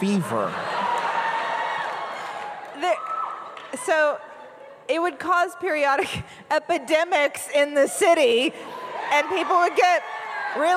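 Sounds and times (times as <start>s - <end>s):
speech: 0.0s - 0.7s, 3.7s - 4.3s, 4.9s - 10.7s
crowd cheering: 0.0s - 5.2s, 8.2s - 10.7s.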